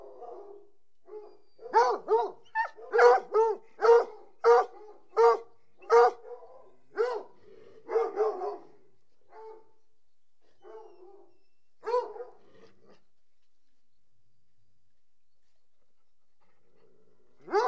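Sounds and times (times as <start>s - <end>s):
dog barking: 0.0s - 9.8s, 10.6s - 12.4s, 17.4s - 17.6s.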